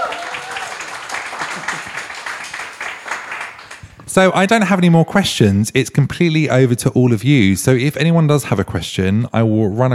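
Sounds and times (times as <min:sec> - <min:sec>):
audience applause: 0:00.0 - 0:04.0
speech: 0:04.2 - 0:09.9.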